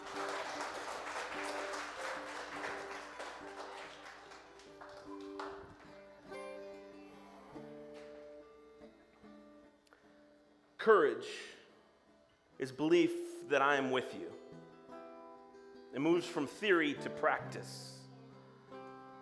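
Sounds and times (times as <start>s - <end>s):
audience clapping: 0.0s - 6.1s
speech: 10.8s - 11.5s, 12.6s - 14.4s, 16.0s - 17.9s.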